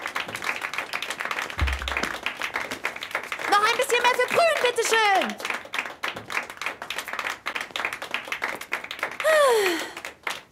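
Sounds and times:
crowd applauding: 0.0 - 10.5
brief low thump: 1.6 - 2.2
speech: 3.9 - 5.6.

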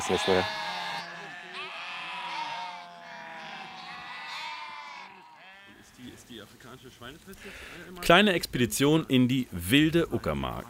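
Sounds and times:
speech: 0.0 - 0.6, 6.4 - 10.6
sheep bleating: 0.0 - 6.2.

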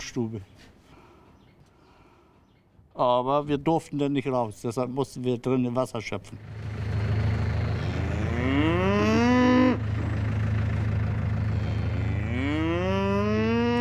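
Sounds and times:
speech: 0.2 - 0.7, 3.0 - 6.6
low rumbling hum: 6.4 - 13.8
Galloway cattle mooing: 7.5 - 13.8.

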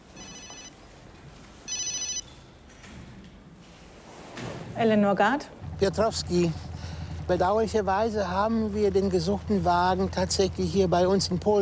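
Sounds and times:
low hum: 0.0 - 11.5
mobile phone ringing: 0.1 - 0.8, 1.6 - 2.3
speech: 4.8 - 6.7, 7.3 - 11.5.

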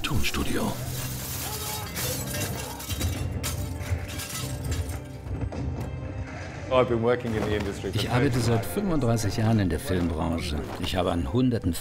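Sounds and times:
speech: 0.2 - 1.0, 6.7 - 11.7
falling debris: 0.7 - 5.4
massive glass roof shattering as a dragon crashes through: 0.8 - 5.2.

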